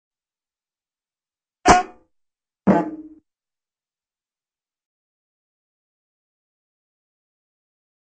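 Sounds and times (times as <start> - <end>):
aluminium bonks: 1.7 - 2.0, 2.7 - 3.2.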